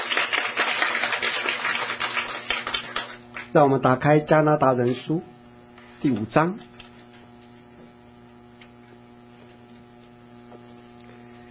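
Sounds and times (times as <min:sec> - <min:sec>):
audience applauding: 0:00.0 - 0:03.5
speech: 0:03.6 - 0:05.3, 0:06.0 - 0:06.7.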